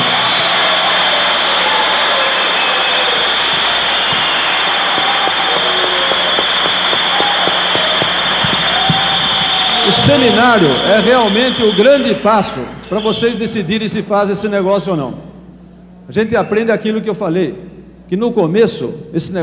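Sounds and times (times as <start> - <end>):
audience applause: 0.0 - 11.8
speech: 10.1 - 15.3, 16.1 - 19.4.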